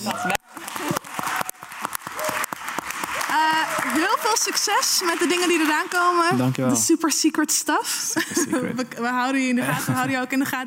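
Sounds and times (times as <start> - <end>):
speech: 0.0 - 0.4, 4.0 - 10.6
laughter: 0.0 - 1.3, 8.1 - 8.9, 9.5 - 10.6
audience applause: 0.0 - 6.9.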